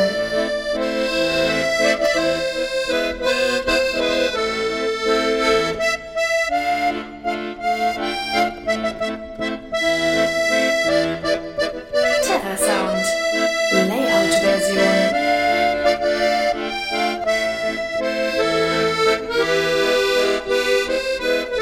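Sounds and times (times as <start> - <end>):
French accordion solo: 0.0 - 21.6.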